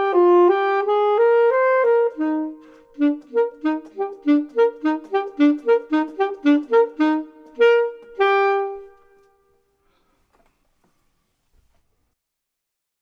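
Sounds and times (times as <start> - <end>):
clarinet: 0.0 - 9.6
saxophone: 0.0 - 9.7.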